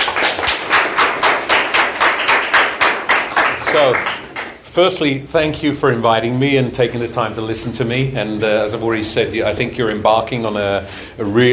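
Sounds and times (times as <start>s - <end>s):
audience applause: 0.0s - 4.6s
speech: 3.8s - 4.2s, 4.8s - 11.5s.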